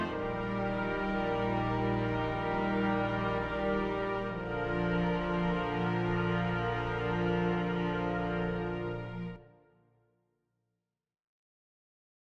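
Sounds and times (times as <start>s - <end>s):
chorale tune: 0.0s - 9.6s.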